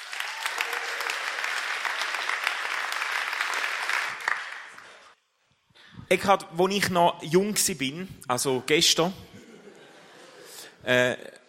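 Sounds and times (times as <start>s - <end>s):
audience applause: 0.0s - 5.2s
speech: 6.1s - 9.3s, 10.8s - 11.3s
laughter: 9.3s - 10.8s.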